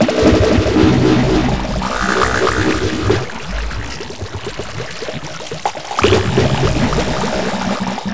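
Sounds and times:
water: 0.0s - 8.1s.

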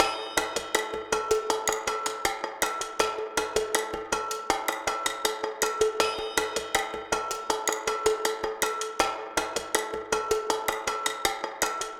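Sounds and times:
junkyard drums: 0.0s - 11.9s.

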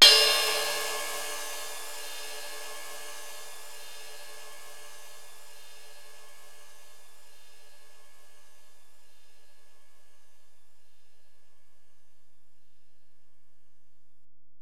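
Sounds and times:
ride cymbal on Alesis DM-PRO: 0.0s - 8.4s.

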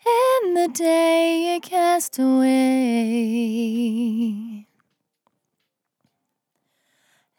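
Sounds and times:
vocal in F at 65 bpm: 0.0s - 4.6s.

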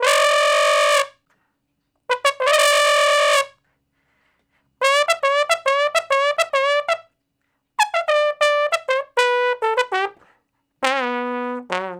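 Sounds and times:
straight-muted trombone in E for R&B solos: 0.0s - 1.2s, 2.1s - 3.6s, 4.8s - 7.1s, 7.8s - 11.9s.

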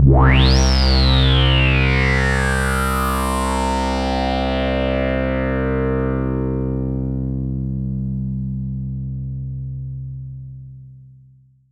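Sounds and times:
5U modular synth pad in C2: 0.0s - 9.5s.

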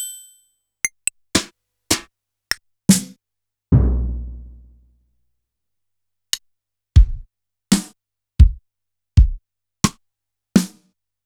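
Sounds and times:
Yamaha PSR-E323 standard drum kit: 0.9s - 2.1s, 2.9s - 3.1s, 3.7s - 4.6s, 7.0s - 7.9s, 8.4s - 9.4s, 10.6s - 10.8s.

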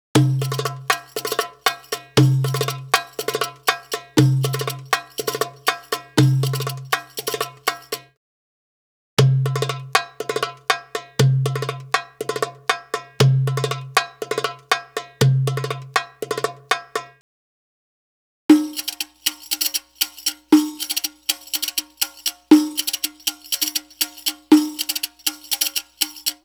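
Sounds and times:
Arabic rhythm percussion: 0.0s - 8.1s, 9.2s - 17.2s, 18.5s - 26.4s.

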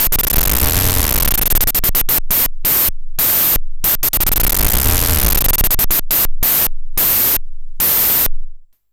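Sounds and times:
pulsing filtered noise: 0.0s - 8.6s.

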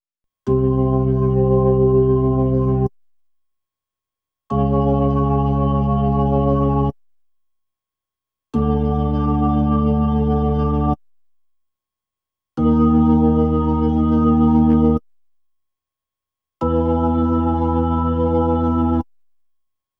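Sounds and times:
Hammond B3 organ: 0.5s - 2.9s, 4.5s - 6.9s, 8.6s - 11.0s, 12.6s - 15.0s, 16.6s - 19.0s.

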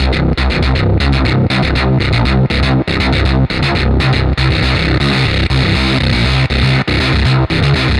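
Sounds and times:
heavy bass: 0.0s - 7.9s.

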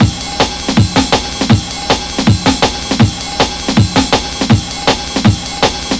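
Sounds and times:
drum and bass ride cymbal drum loop at 160: 0.0s - 5.9s.

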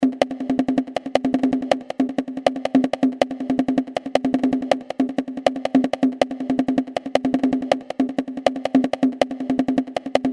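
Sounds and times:
undynamic percussion: 0.0s - 10.3s.

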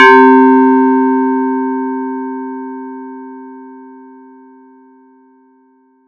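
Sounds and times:
random bell sound effect: 0.0s - 2.3s.

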